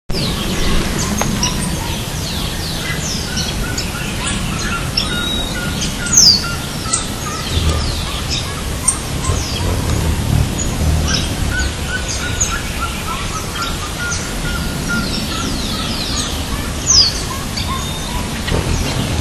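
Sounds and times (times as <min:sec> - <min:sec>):
Cariama cristata: 0:00.1 - 0:19.1.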